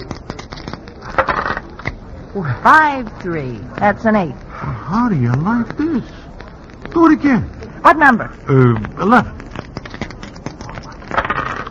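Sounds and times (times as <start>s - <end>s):
dice rolling across a hard surface: 0.0s - 2.0s, 9.3s - 11.6s
speech: 2.3s - 6.2s, 6.9s - 9.4s.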